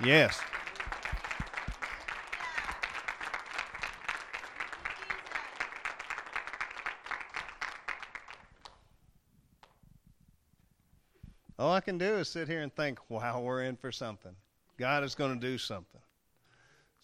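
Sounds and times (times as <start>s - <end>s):
speech: 0.0s - 0.5s, 11.6s - 16.0s
audience applause: 0.0s - 8.8s.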